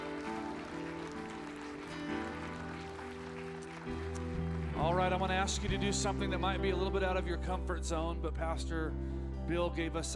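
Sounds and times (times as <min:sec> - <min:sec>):
audience applause: 0:00.0 - 0:05.7
speech: 0:04.8 - 0:10.1.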